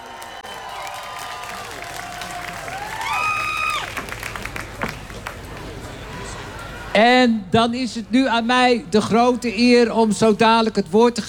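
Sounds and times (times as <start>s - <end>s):
crowd applauding: 0.0s - 6.9s
cheering voices: 0.0s - 7.0s
speech: 7.0s - 11.2s.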